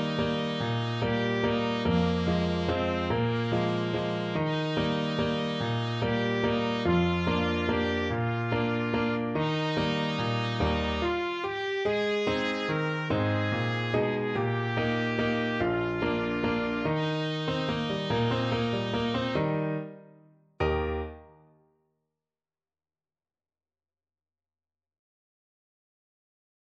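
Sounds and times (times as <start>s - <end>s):
sea trumpet: 0.0s - 20.0s.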